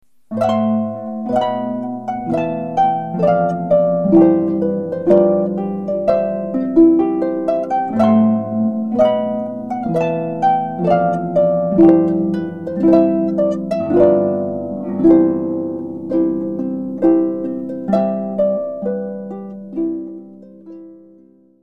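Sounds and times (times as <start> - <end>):
harp playing a wedding recessional: 0.2 - 21.6.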